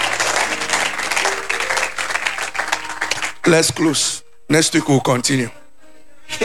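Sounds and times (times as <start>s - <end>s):
crowd audience clapping hands: 0.0s - 4.0s
speech: 3.4s - 5.6s.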